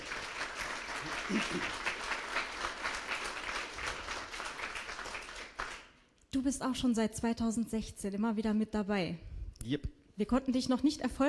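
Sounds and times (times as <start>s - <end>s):
audience applause: 0.0s - 5.9s
speech: 1.0s - 1.9s, 6.3s - 11.2s.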